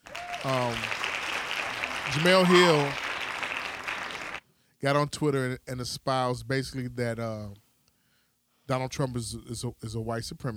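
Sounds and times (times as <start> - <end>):
vocal whoop: 0.0 - 0.9
hand claps: 0.0 - 4.4
speech: 0.4 - 1.0, 2.1 - 3.0, 4.8 - 7.6, 8.7 - 10.5.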